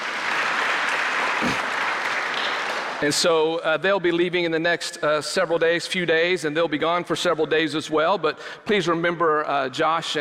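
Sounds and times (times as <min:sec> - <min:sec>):
audience hand clapping: 0:00.0 - 0:03.2
speech: 0:03.0 - 0:10.2.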